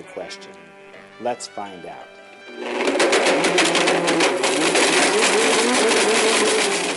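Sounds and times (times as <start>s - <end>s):
speech: 0.0s - 6.9s
blender motor roaring: 2.5s - 6.9s.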